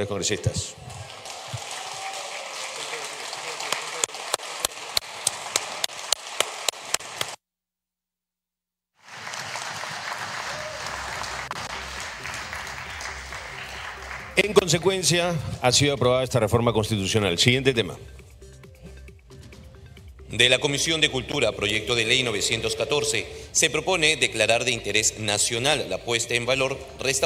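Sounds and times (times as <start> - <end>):
speech: 0.0 - 1.1, 14.4 - 18.2, 20.4 - 27.2
Congress members applauding: 0.7 - 7.4, 9.0 - 14.9.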